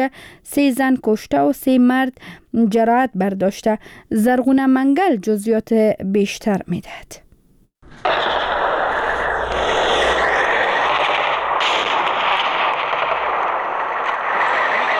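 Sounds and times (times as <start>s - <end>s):
speech: 0.0s - 7.2s
automatic gunfire from clashes between Afghan and Pakistani forces in Barikot, Kunar: 8.0s - 14.9s.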